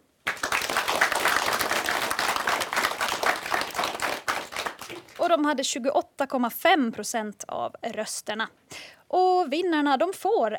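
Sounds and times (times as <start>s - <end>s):
audience applause: 0.2s - 5.2s
speech: 5.3s - 10.5s.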